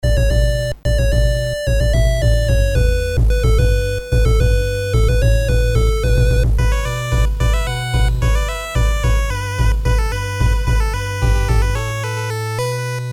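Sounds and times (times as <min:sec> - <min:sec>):
8-bit chiptune game music: 0:00.0 - 0:13.1.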